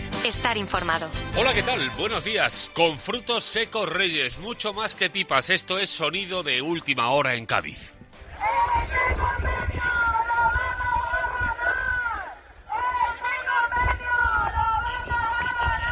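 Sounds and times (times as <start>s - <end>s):
speech: 0.2s - 8.0s
metal workers' protest crowd chanting a slogan: 8.2s - 15.8s.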